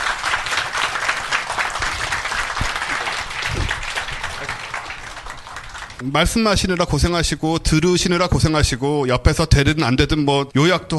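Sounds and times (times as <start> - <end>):
audience applause: 0.0 - 6.0
speech: 6.0 - 10.9.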